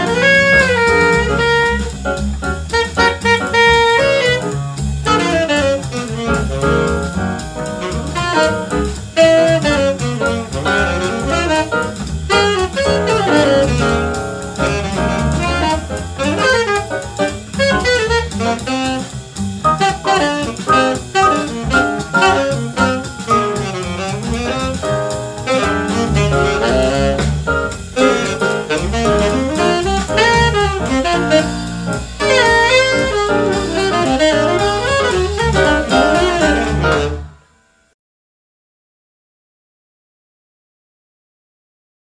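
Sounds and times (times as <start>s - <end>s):
jazz quartet playing: 0.0s - 37.4s.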